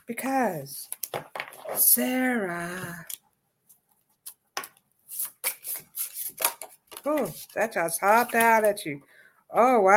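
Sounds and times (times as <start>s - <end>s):
speech: 0.1s - 1.0s, 1.7s - 3.2s, 7.0s - 9.9s
deck of cards being shuffled: 4.2s - 8.7s.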